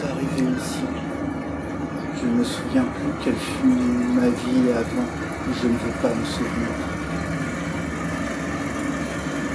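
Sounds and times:
speech: 0.2 - 1.2, 2.2 - 6.9
engine noise: 2.2 - 9.5.

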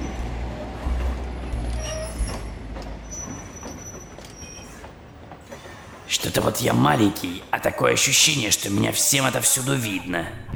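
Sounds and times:
train wheels squealing: 0.0 - 7.4
train rolling into its final station: 0.0 - 10.0
speech: 6.1 - 10.5.

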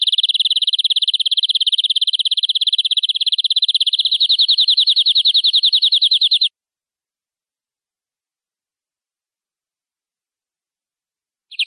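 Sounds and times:
canary singing: 0.0 - 6.5.

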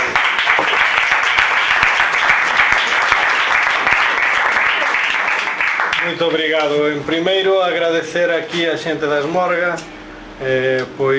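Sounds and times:
audience applause: 0.0 - 6.5
speech: 6.1 - 11.1.

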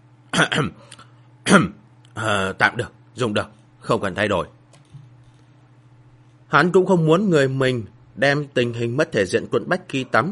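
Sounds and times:
person coughing: 0.3 - 0.9
speech: 0.4 - 4.6, 6.5 - 10.3.

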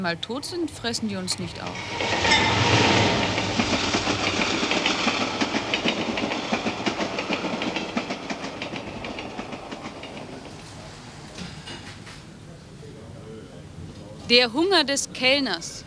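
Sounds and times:
speech: 0.0 - 3.2, 14.3 - 15.8
train passing on rails with clickety-clack: 0.0 - 15.8.

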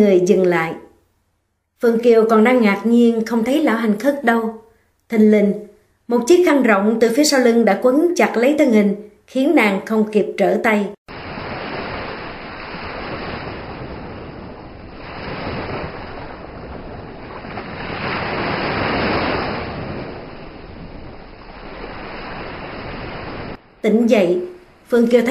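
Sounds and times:
speech: 0.0 - 0.8, 1.8 - 11.0, 23.8 - 25.2
ocean waves around a drifting ship: 11.1 - 25.2
wind at sea: 11.1 - 25.2.

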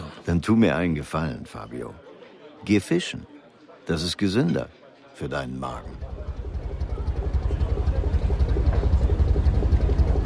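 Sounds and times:
speech: 0.3 - 6.1
ferry engine arriving: 5.8 - 10.2.

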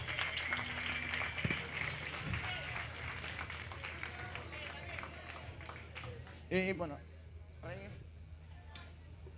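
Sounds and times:
audience applause: 0.0 - 6.4
speech: 6.5 - 8.0.

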